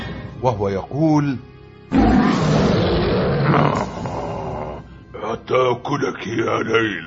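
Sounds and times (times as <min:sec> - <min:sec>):
speech: 0:00.4 - 0:02.3, 0:05.4 - 0:07.0
wolf growling in a children's story: 0:01.9 - 0:04.8.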